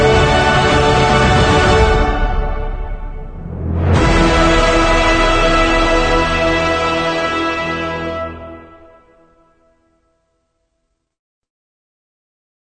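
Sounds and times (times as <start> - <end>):
emotional inspiring epic cinematic trailer music: 0.0 - 9.5.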